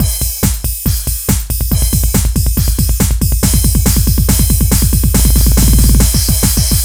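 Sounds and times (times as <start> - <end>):
drum beat at 140 BPM: 0.0 - 6.8.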